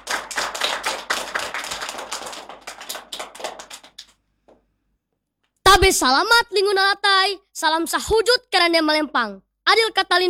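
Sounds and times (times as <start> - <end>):
audience applause welcoming a student about to give a speech: 0.0 - 4.2
speech: 5.8 - 10.2.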